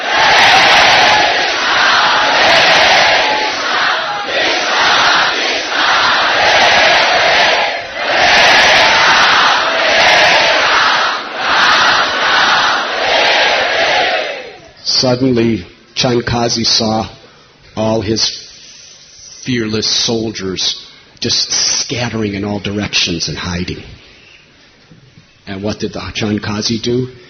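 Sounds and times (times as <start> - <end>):
kirtan crowd of millions chanting a mantra: 0.0 - 14.6
speech: 15.0 - 17.2, 17.8 - 18.4, 19.4 - 24.0, 25.5 - 27.2.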